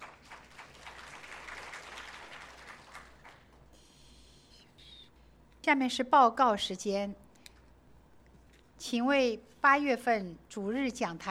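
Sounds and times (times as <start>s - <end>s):
audience applause welcoming newcomers: 0.0s - 3.5s
speech: 5.6s - 7.2s, 8.9s - 11.3s.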